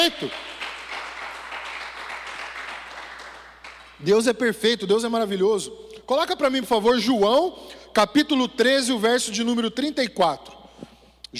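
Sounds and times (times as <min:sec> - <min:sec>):
speech: 0:00.0 - 0:00.5, 0:04.0 - 0:10.6
audience applause: 0:00.0 - 0:04.0.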